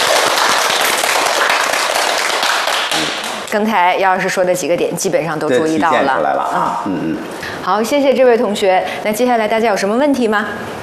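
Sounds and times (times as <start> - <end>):
classroom applause: 0.0 - 3.8
speech: 3.5 - 10.8.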